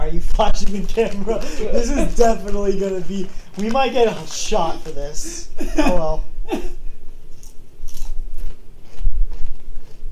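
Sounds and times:
speech: 0:00.1 - 0:06.8
crunching on chips: 0:00.6 - 0:05.0, 0:07.3 - 0:10.0
laughter: 0:01.2 - 0:02.4, 0:05.2 - 0:06.7.

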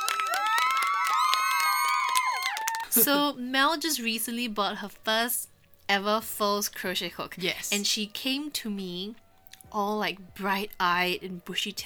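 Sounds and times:
cheering and applause sound effect: 0:00.0 - 0:03.0
speech: 0:02.9 - 0:11.8.

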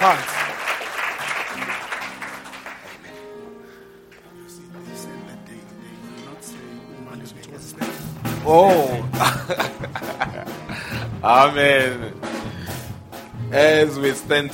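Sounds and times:
audience applause: 0:00.0 - 0:03.2
laughter: 0:02.6 - 0:03.3, 0:08.5 - 0:11.2
speech: 0:08.5 - 0:08.9, 0:11.2 - 0:12.2, 0:13.5 - 0:14.5.

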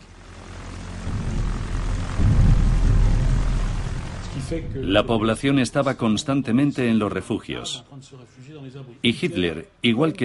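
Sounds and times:
propeller aircraft engines during bombing raid: 0:00.0 - 0:05.6
speech: 0:04.5 - 0:10.2.

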